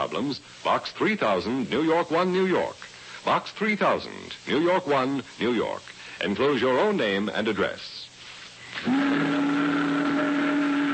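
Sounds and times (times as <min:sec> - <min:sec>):
speech: 0:00.1 - 0:08.0, 0:08.7 - 0:09.4
boat whistle blast: 0:08.8 - 0:10.9.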